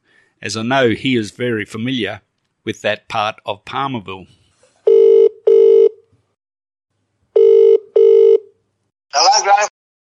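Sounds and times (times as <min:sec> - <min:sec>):
speech: 0:00.4 - 0:04.4
telephone ringing for an outgoing call: 0:04.9 - 0:06.0, 0:07.4 - 0:08.5.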